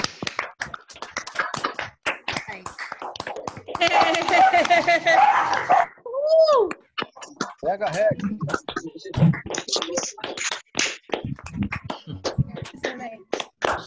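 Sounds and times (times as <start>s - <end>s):
group clapping: 0.0s - 5.9s, 6.5s - 13.8s
laughter: 3.8s - 5.7s, 7.6s - 10.3s
dogs barking and yelping: 3.8s - 6.0s
speech: 4.1s - 5.8s, 7.8s - 9.4s.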